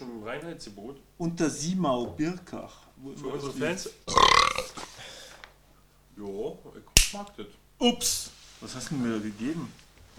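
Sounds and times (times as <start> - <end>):
speech: 0.3 - 4.9, 6.2 - 10.1
loud drawn-out burp: 4.1 - 4.8.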